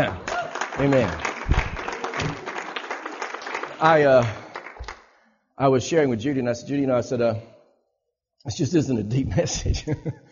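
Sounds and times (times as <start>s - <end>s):
audience clapping: 0.0s - 5.2s
speech: 0.8s - 1.3s, 3.8s - 4.4s, 5.6s - 7.5s, 8.4s - 10.2s.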